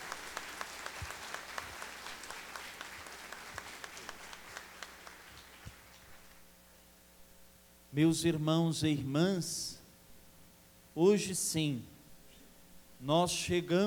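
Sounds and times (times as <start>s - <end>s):
applause: 0.0s - 6.4s
speech: 8.0s - 9.8s, 11.0s - 11.9s, 13.0s - 13.8s.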